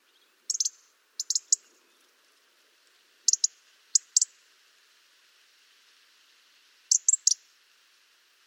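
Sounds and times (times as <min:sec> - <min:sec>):
European robin ticking calls: 0:00.0 - 0:04.4, 0:06.9 - 0:07.5
faint background hiss: 0:00.0 - 0:08.4.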